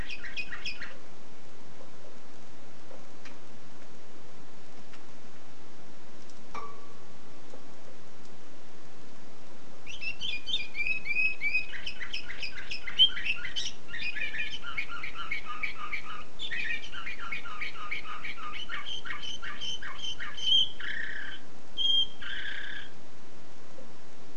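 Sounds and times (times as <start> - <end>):
canary singing: 0.0 - 1.0, 9.8 - 23.0
soft tone: 6.5 - 7.2.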